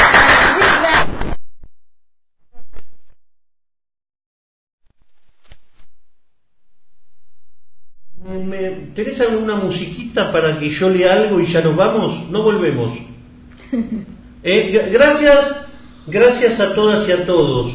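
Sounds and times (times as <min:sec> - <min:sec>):
audience applause: 0:00.0 - 0:01.1
speech: 0:09.0 - 0:13.1, 0:13.7 - 0:17.7.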